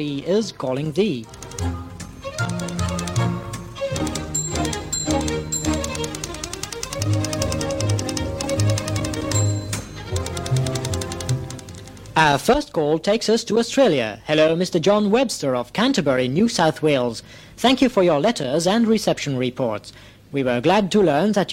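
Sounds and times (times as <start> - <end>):
speech: 0.0 - 1.8, 2.4 - 2.9, 12.2 - 21.5
musical typewriter jingle: 1.2 - 12.2.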